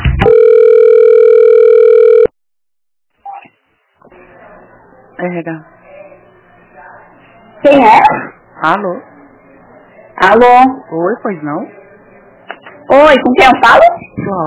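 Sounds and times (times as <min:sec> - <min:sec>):
band-limited phone-line music during a call transfer: 0:00.2 - 0:02.3
telephone ring tone during a call transfer: 0:00.2 - 0:02.3
speech: 0:05.3 - 0:05.7, 0:07.6 - 0:09.1, 0:10.2 - 0:11.8, 0:12.9 - 0:14.4.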